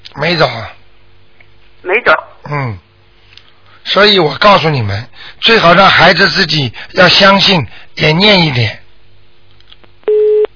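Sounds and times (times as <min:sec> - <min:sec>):
speech: 0:00.2 - 0:00.8, 0:01.8 - 0:02.8, 0:03.8 - 0:08.8
telephone busy signal after dropped call: 0:10.1 - 0:10.5.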